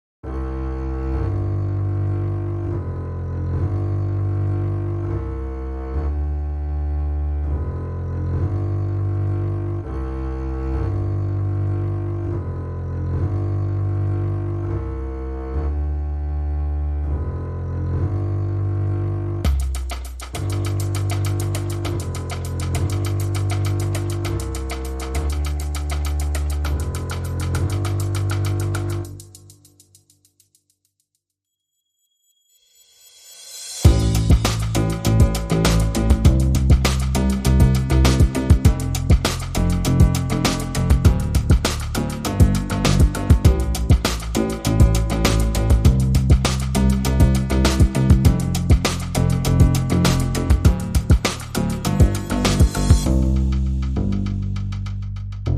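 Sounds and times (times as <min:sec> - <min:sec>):
bass: 0:00.2 - 0:29.9, 0:33.6 - 0:55.5
drums: 0:19.5 - 0:30.0, 0:33.2 - 0:55.5.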